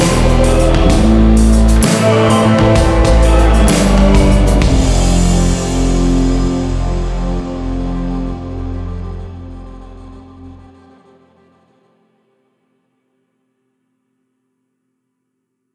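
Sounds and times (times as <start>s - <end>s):
big pop music score: 0.0s - 11.2s.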